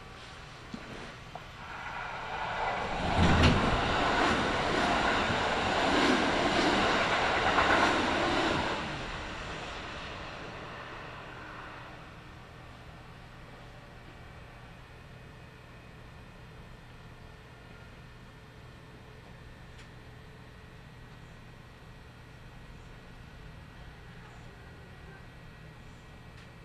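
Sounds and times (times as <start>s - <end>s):
Kintetsu Nagoya Line local train running: 0.0s - 14.4s
low hum: 1.4s - 13.9s.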